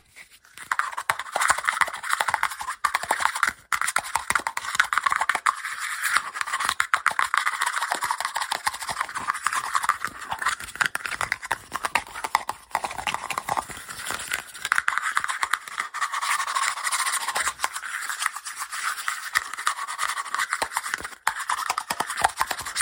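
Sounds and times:
fast tapping and scratching: 0:00.6 - 0:22.8.

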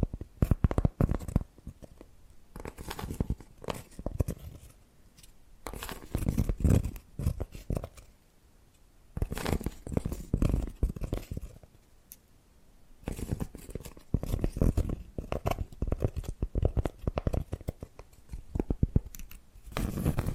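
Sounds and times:
tapping and scratching: 0:00.0 - 0:04.8, 0:05.6 - 0:08.1, 0:09.2 - 0:11.7, 0:13.0 - 0:20.3.

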